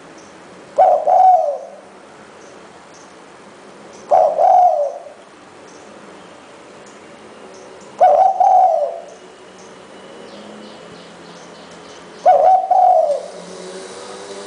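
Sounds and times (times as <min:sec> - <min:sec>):
spotted dove cooing: 0:00.8 - 0:01.9, 0:04.1 - 0:05.2, 0:08.0 - 0:09.2, 0:12.2 - 0:13.6.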